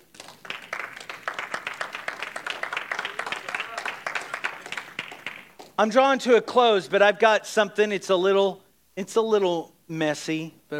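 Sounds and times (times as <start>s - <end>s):
audience clapping hands: 0.0s - 5.8s
speech: 5.8s - 10.7s.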